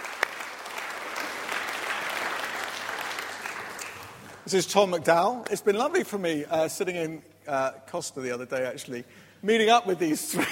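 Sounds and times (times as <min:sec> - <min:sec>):
audience applause: 0:00.0 - 0:04.5
speech: 0:04.5 - 0:10.5.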